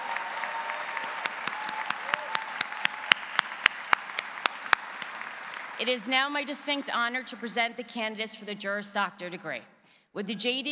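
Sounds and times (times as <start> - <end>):
audience applause for MS graduates: 0.0 - 6.4
speech: 5.8 - 10.7.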